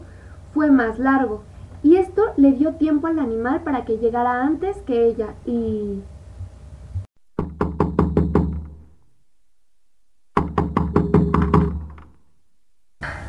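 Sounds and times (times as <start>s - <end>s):
speech: 0.6s - 6.1s
firm knocking on a door: 7.4s - 8.9s, 10.3s - 12.2s.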